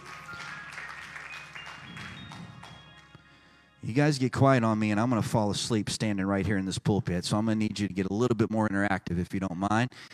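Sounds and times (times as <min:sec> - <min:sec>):
seated people clapping hands: 0:00.0 - 0:03.3
speech: 0:03.9 - 0:10.1.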